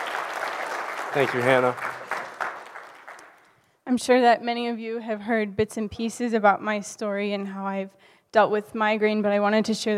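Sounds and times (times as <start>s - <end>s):
crowd applause: 0.0s - 3.5s
speech: 1.2s - 2.0s, 3.9s - 9.9s.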